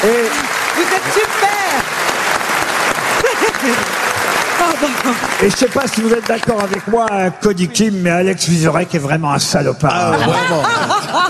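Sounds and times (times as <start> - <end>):
audience applause: 0.0 - 7.6
laughter: 3.0 - 8.0, 9.9 - 11.2
speech: 5.1 - 11.2.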